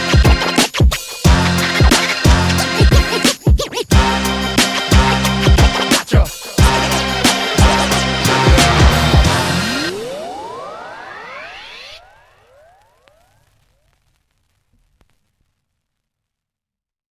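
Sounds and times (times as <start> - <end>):
classic boom bap beat: 0.0 - 10.8.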